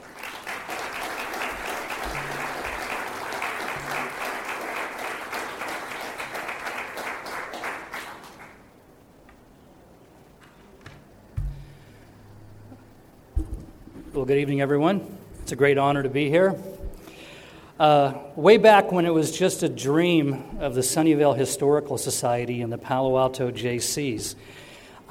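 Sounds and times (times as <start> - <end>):
audience applause welcoming a speaker at an evening event: 0.0 - 8.7
speech: 14.2 - 16.8, 17.8 - 25.0.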